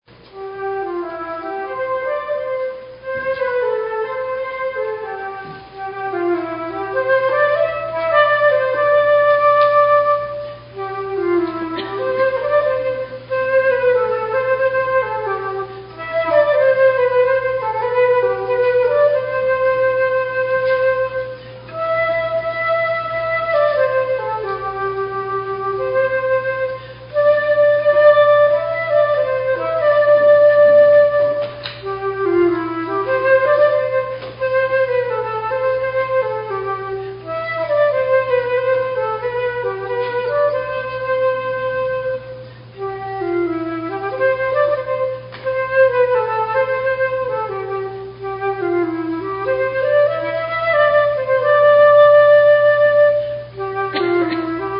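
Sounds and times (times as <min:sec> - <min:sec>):
flute solo: 0:00.1 - 0:54.7.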